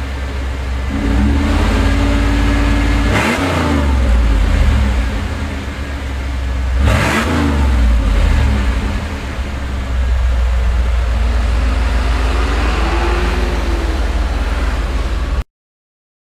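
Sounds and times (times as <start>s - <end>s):
normal exhaust muffler: 0.0s - 15.4s.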